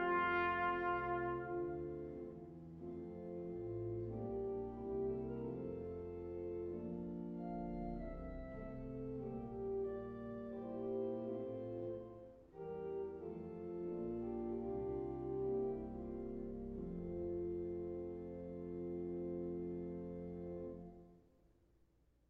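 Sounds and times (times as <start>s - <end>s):
trumpet and organ piece for weddings: 0.0s - 21.2s.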